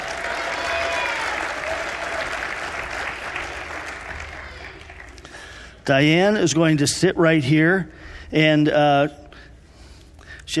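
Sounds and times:
audience at a testimony gathering applauding: 0.0 - 5.5
speech: 5.8 - 9.2.

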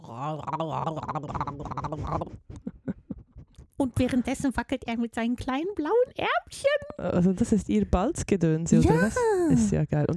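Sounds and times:
voice imitating bubbling throat-sac courtship call: 0.0 - 2.4
speech: 0.4 - 2.4, 4.0 - 10.1.

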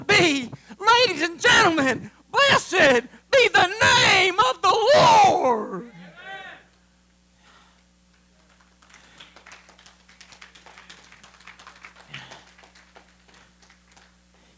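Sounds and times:
speech: 0.2 - 5.2
audience clapping: 8.1 - 14.5.

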